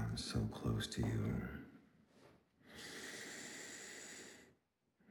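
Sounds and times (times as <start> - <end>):
speech: 0.2 - 1.6
breathing right into the microphone: 2.7 - 4.5.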